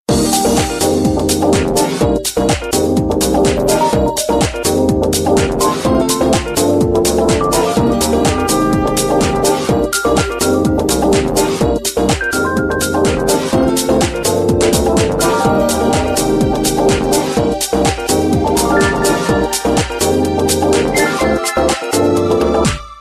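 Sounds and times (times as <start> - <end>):
rock music: 0.2 - 22.5.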